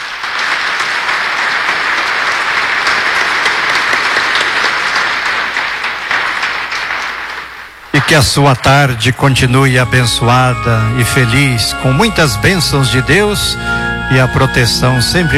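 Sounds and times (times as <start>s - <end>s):
audience applause: 0.0s - 9.7s
speech: 8.0s - 15.3s.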